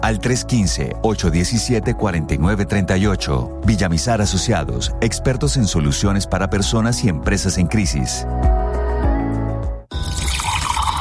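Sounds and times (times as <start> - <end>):
speech: 0.0 - 8.6
water being poured: 9.9 - 10.9.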